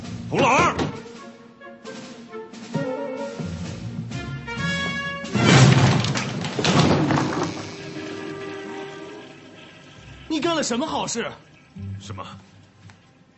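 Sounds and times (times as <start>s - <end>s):
music: 0.0s - 13.3s
speech: 0.3s - 0.6s, 10.6s - 12.5s
wooden door being kicked in: 0.4s - 1.1s, 4.8s - 7.9s.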